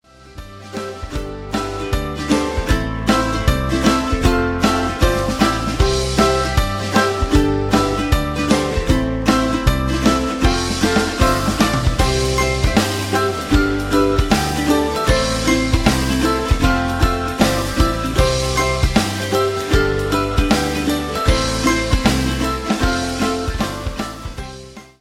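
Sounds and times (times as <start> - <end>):
music: 0.0 - 24.9.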